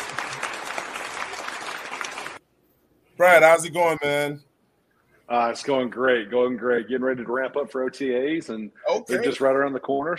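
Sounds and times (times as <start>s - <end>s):
stadium crowd cheering: 0.0s - 2.4s
speech: 3.2s - 4.5s, 5.3s - 10.1s.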